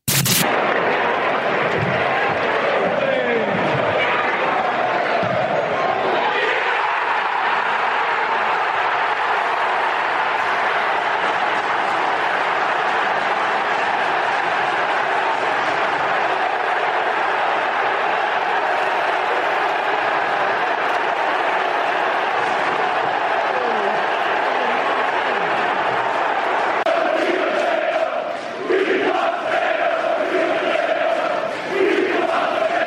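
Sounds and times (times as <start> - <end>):
football crowd cheering at Leeds goal: 0.0 - 32.8
crowd singing: 13.8 - 32.8.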